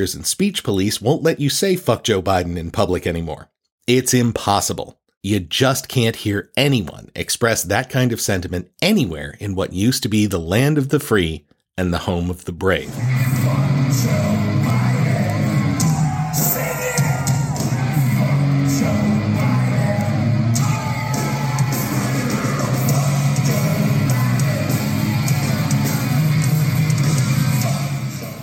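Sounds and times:
speech: 0.0 - 14.2
concert crowd yelling: 13.0 - 27.9.

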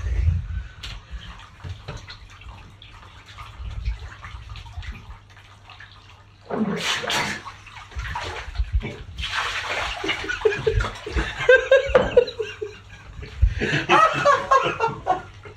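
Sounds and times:
water sloshing and dripping in a bathtub: 0.0 - 15.5
loud splash as something surges out of bathwater: 6.4 - 11.5
laughter: 10.0 - 15.5.

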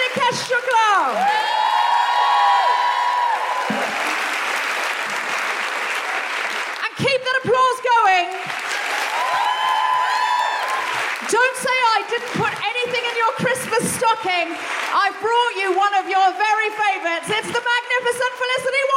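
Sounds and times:
audience applause: 0.0 - 7.0, 8.0 - 15.8
speech: 0.2 - 1.2, 14.1 - 18.9.

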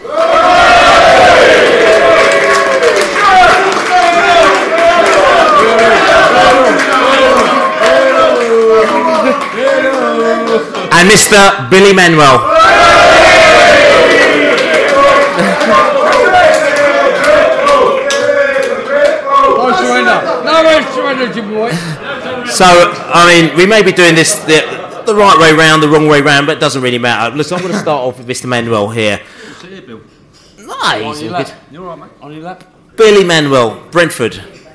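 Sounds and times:
audience applause: 0.0 - 10.9, 12.6 - 20.2
speech: 11.0 - 12.8, 22.5 - 29.3, 30.8 - 34.6
laughter: 15.1 - 16.2, 21.6 - 23.1, 24.3 - 25.5, 27.5 - 28.1.

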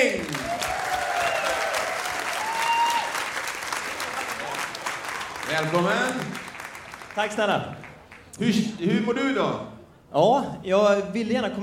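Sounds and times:
audience applause: 0.0 - 8.4
speech: 5.6 - 6.4, 7.2 - 7.8, 8.4 - 11.6.

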